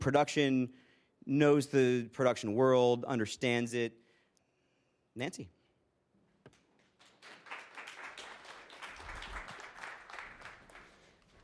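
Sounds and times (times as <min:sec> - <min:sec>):
speech: 0:00.0 - 0:04.0, 0:05.2 - 0:05.6
audience applause: 0:07.0 - 0:11.4.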